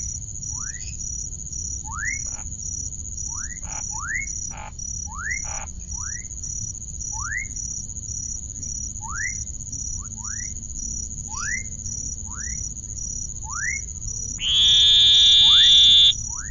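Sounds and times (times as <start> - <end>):
Elachistocleis ovalis oval frog buzzing call: 14.4 - 16.2.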